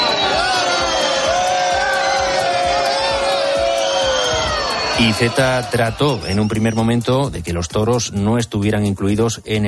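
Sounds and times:
large crowd booing and jeering at a bullring: 0.0s - 7.0s
speech: 5.0s - 9.6s.

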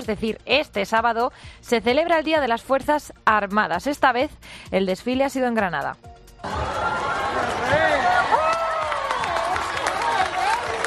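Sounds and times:
speech: 0.0s - 7.0s
large crowd cheering: 6.4s - 10.8s
crowd clapping: 6.6s - 10.8s.

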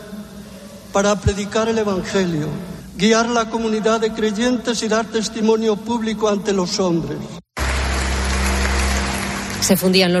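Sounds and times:
speech: 1.0s - 7.4s, 9.6s - 10.1s
warm applause from church assembly: 7.6s - 10.1s.

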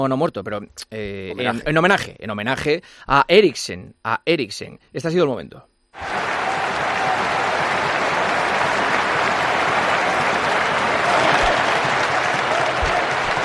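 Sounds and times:
speech: 0.0s - 6.2s
stadium crowd in Copenhagen applauding: 6.0s - 13.4s.

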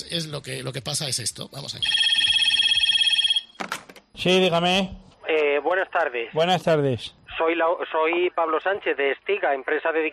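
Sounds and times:
speech: 0.0s - 2.4s, 4.2s - 5.0s, 5.6s - 10.1s
telephone ringing: 1.8s - 3.6s.

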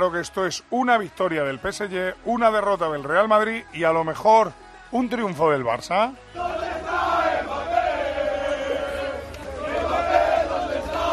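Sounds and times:
speech: 0.0s - 6.4s
football fans chanting: 6.2s - 11.1s.

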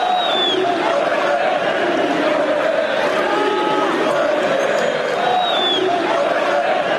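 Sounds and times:
shrill whistles: 0.0s - 0.7s, 5.2s - 6.0s
stadium crowd chanting insults in unison: 0.0s - 6.9s.

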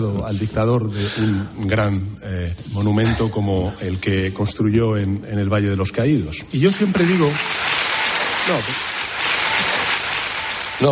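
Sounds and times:
speech: 0.0s - 7.6s, 8.5s - 8.9s
audience applause at a speech: 6.7s - 10.9s.

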